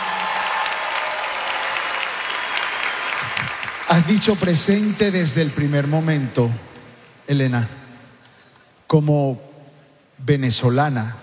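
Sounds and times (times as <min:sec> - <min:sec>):
audience applause: 0:00.0 - 0:06.1
speech: 0:04.0 - 0:06.7, 0:07.3 - 0:07.8, 0:08.9 - 0:09.5, 0:10.2 - 0:11.2.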